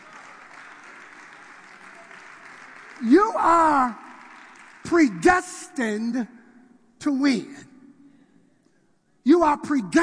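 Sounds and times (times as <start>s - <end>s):
audience clapping hands: 0.0s - 6.1s
speech: 3.0s - 4.0s, 4.9s - 6.4s, 7.0s - 7.7s, 9.3s - 10.0s.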